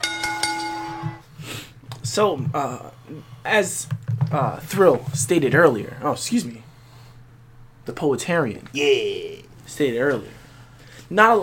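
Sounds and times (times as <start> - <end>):
bell ringing: 0.0 - 1.2
speech: 2.1 - 6.7, 7.9 - 10.4, 11.1 - 11.4.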